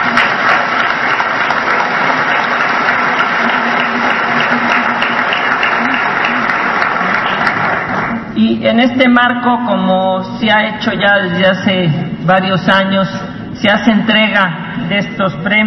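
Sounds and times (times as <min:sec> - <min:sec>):
audience applause: 0:00.0 - 0:08.4
speech: 0:08.6 - 0:15.6.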